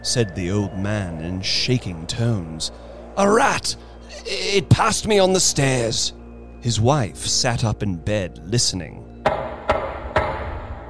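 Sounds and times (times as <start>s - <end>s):
speech: 0.0s - 9.4s
loud knock on a door: 9.3s - 10.6s.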